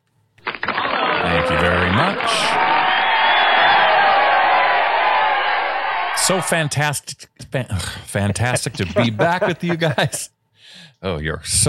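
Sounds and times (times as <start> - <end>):
audience applause: 0.8 - 6.2
crowd cheering and whooping: 0.8 - 6.2
speech: 1.5 - 2.7, 6.2 - 11.6
laughter: 8.2 - 10.3.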